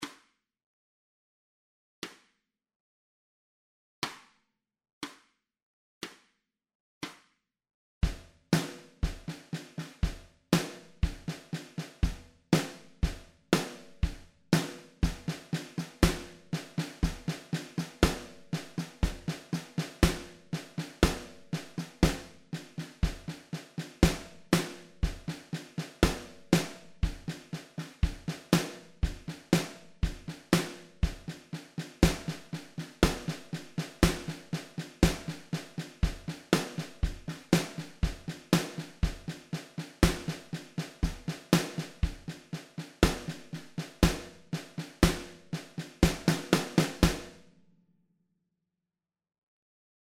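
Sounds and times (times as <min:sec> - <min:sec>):
snare drum: 0:08.0 - 0:47.5.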